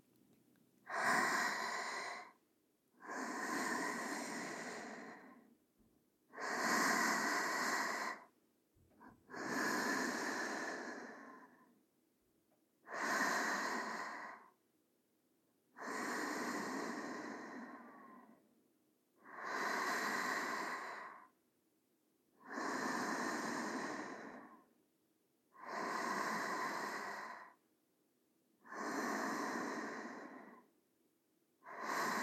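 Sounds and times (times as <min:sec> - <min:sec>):
sleeping breathing: 0:00.9 - 0:02.4, 0:03.0 - 0:05.5, 0:06.3 - 0:08.3, 0:09.0 - 0:11.7, 0:12.8 - 0:14.6, 0:15.8 - 0:18.4, 0:19.2 - 0:21.4, 0:22.4 - 0:24.7, 0:25.5 - 0:27.6, 0:28.6 - 0:30.7, 0:31.6 - 0:32.2.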